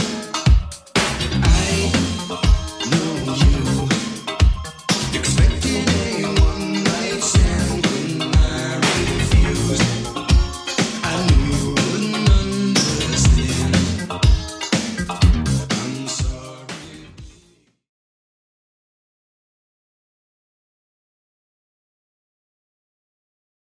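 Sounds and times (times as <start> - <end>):
80s drum machine beat: 0.0 - 17.5.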